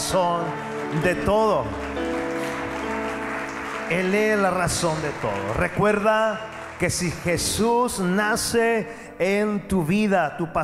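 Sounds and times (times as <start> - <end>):
audience applause: 0.0 - 8.2
sustained keyboard chords: 0.0 - 10.1
speech: 0.1 - 1.8, 3.9 - 10.6.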